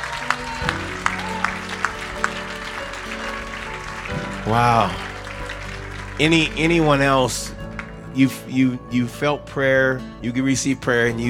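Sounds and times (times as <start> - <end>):
audience clapping in rhythm: 0.0 - 8.6
music: 0.0 - 11.2
speech: 4.4 - 5.1, 6.2 - 7.6, 8.2 - 11.2.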